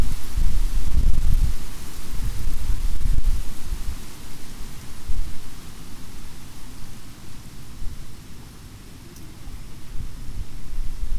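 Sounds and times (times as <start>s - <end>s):
faint steady hiss: 0.0s - 11.1s
wind roaring through oak and hickory trees: 0.0s - 11.1s.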